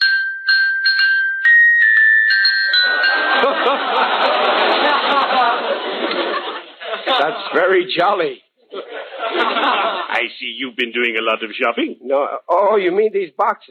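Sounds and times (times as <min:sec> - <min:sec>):
small handbell ringing: 0:00.0 - 0:04.0
laughter: 0:02.7 - 0:07.9, 0:08.7 - 0:10.3
speech: 0:07.2 - 0:08.4, 0:09.2 - 0:13.7.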